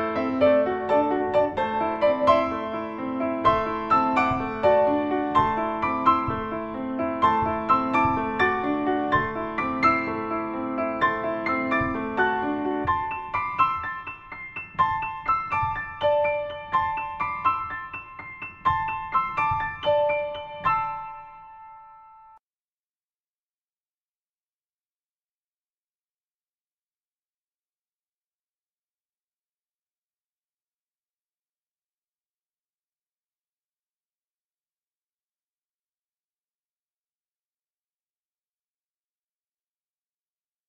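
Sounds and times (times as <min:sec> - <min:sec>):
meditative piano: 0:00.0 - 0:22.4.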